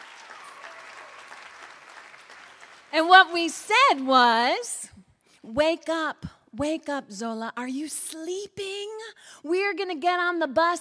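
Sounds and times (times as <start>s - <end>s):
group of people applauding: 0.0s - 4.2s
speech: 3.0s - 10.8s.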